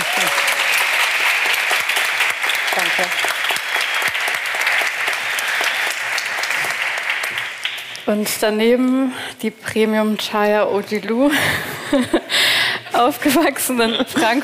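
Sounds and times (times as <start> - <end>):
audience applause: 0.0 - 8.1
speech: 3.0 - 3.4, 8.1 - 14.4.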